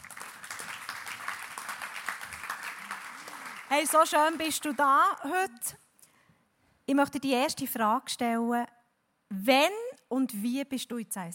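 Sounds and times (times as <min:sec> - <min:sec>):
audience applause: 0:00.0 - 0:04.5
speech: 0:03.7 - 0:05.8, 0:06.9 - 0:11.3.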